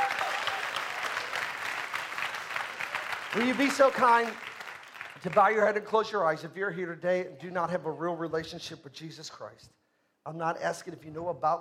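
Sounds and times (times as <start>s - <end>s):
audience hand clapping: 0.0s - 6.0s
speech: 3.3s - 4.4s, 5.2s - 11.6s.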